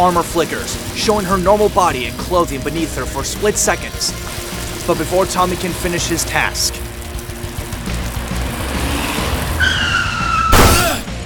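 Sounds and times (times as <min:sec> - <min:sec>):
speech: 0:00.0 - 0:06.8
car engine rumble: 0:00.0 - 0:11.2
car crashing into a person: 0:04.2 - 0:11.2
car tyres screeching in a skid: 0:08.6 - 0:11.1.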